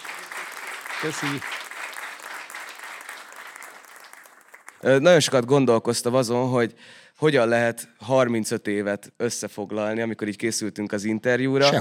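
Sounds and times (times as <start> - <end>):
applause: 0.0 - 5.1
speech: 1.0 - 1.6, 4.8 - 11.7.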